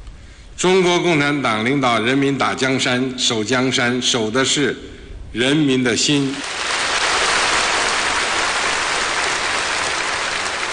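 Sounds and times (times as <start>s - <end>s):
speech: 0.6s - 6.7s
thunderous applause from a large crowd: 6.2s - 10.7s.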